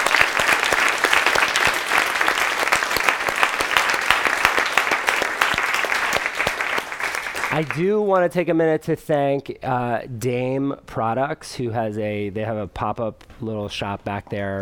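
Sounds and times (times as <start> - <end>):
audience round of applause: 0.0 - 7.9
speech: 7.6 - 14.6.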